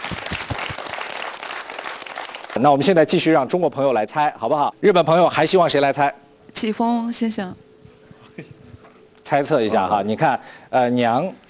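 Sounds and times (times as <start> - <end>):
audience applause during a Chinese–Japanese word-guessing game: 0.0 - 2.7
speech: 2.6 - 7.6, 8.4 - 8.6, 9.3 - 11.4.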